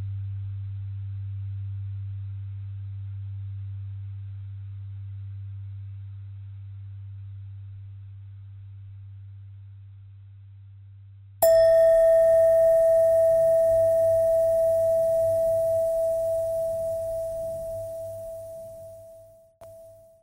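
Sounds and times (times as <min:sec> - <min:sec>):
bell: 0:11.5 - 0:20.1.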